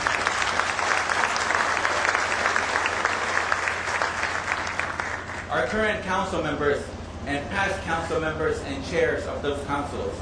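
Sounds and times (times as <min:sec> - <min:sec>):
audience applause: 0:00.0 - 0:05.5
speech: 0:05.6 - 0:10.2.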